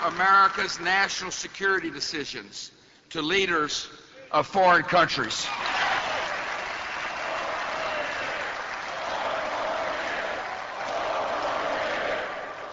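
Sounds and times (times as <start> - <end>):
speech: 0.0 - 5.7
crowd cheering loudly: 5.5 - 12.7
crowd chanting four more years: 7.1 - 12.7.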